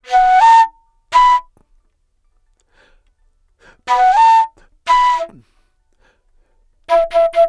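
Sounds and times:
Asian wood flute: 0.0s - 1.6s, 3.7s - 5.5s, 6.9s - 7.4s.

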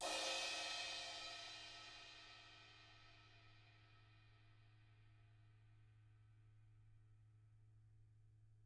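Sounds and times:
cymbal kits: 0.0s - 3.6s.

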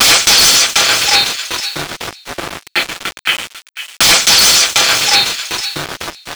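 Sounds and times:
envelope beat: 0.0s - 2.1s, 4.0s - 6.1s.

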